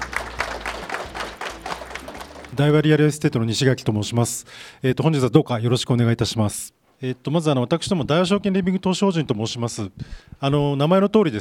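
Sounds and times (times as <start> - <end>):
faint audience applause welcoming a company president at an investor presentation: 0.0 - 2.9
speech: 2.6 - 11.4.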